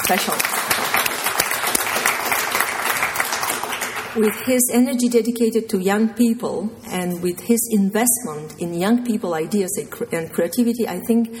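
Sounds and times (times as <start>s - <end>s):
audience applause: 0.0s - 4.4s
speech: 0.1s - 1.1s, 4.2s - 11.3s.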